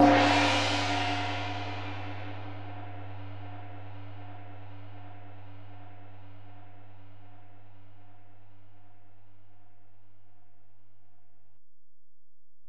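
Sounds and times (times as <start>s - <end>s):
Alesis DM-PRO drum machine ride cymbal: 0.0s - 1.6s.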